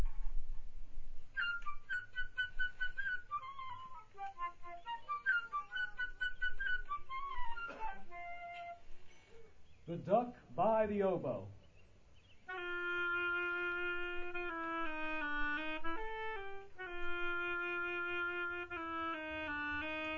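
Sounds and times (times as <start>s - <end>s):
flute playing a melody: 1.3s - 9.3s, 12.4s - 20.1s
speech: 9.9s - 11.6s.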